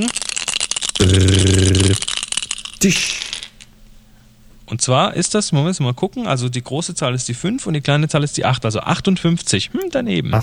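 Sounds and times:
speech: 0:00.0 - 0:00.2, 0:01.1 - 0:01.5, 0:02.8 - 0:03.3, 0:04.8 - 0:10.4
die rattling and clattering: 0:00.0 - 0:03.6
loud low buzzing tone: 0:01.0 - 0:02.0.

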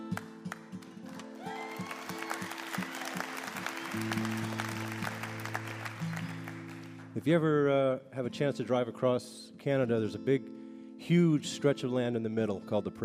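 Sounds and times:
audience applause: 0:01.0 - 0:07.2
speech: 0:04.0 - 0:04.3, 0:07.2 - 0:10.5, 0:11.1 - 0:13.0.

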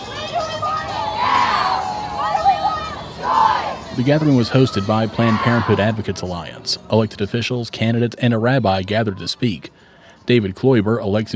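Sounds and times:
crowd shouting and cheering at an outdoor rally outside a courthouse: 0:00.0 - 0:06.8
raised voices: 0:00.0 - 0:06.9
speech: 0:04.0 - 0:11.3.

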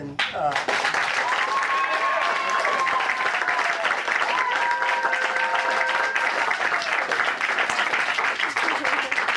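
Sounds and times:
audience applause vote: 0:00.6 - 0:09.3.

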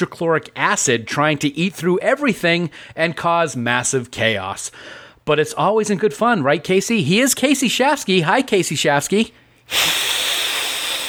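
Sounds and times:
speech: 0:00.0 - 0:10.1
person hissing: 0:09.7 - 0:11.0.

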